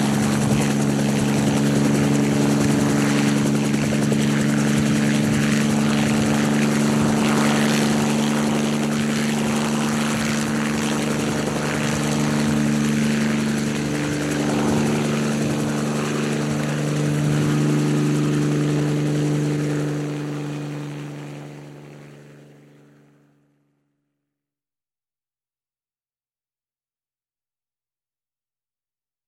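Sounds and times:
helicopter idling on a helipad: 0:00.0 - 0:23.4.

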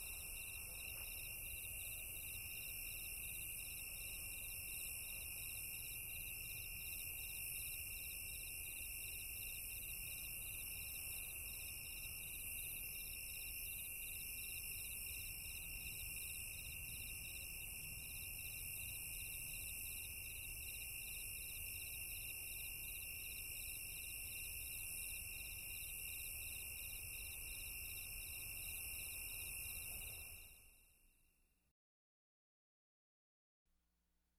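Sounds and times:
crickets chirping softly at night: 0:00.0 - 0:31.4.

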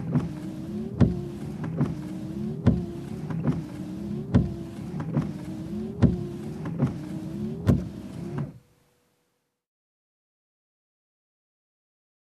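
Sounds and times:
car windshield wiper: 0:00.0 - 0:08.6.

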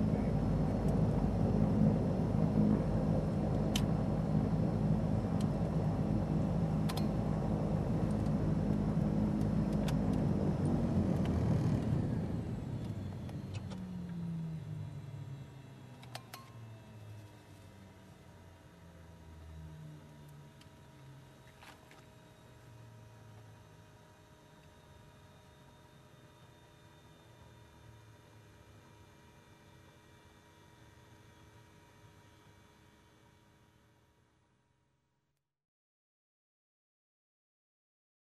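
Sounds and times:
aircraft rolling on the ground: 0:00.0 - 0:17.7.

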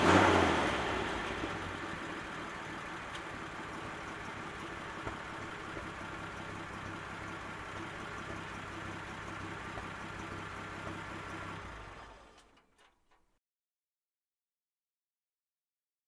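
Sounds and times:
military truck engine revving: 0:00.0 - 0:12.4.

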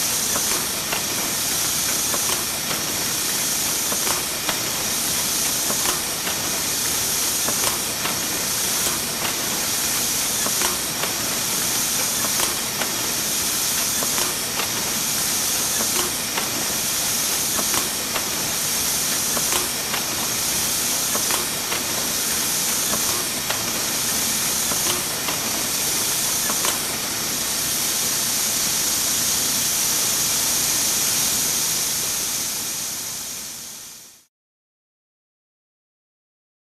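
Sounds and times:
heat press: 0:00.0 - 0:28.2
industrial planer machine: 0:00.0 - 0:33.1.

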